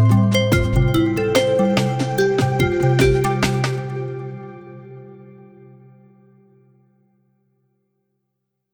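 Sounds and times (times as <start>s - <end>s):
hip hop music: 0.0s - 4.0s.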